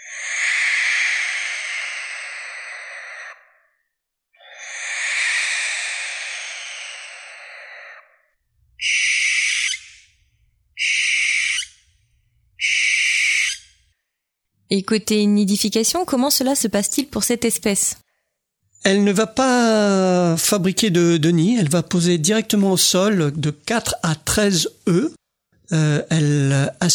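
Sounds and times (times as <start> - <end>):
barn owl territorial screeching call: 0.0 - 3.8, 4.4 - 14.0
speech: 14.7 - 18.0, 18.8 - 26.9.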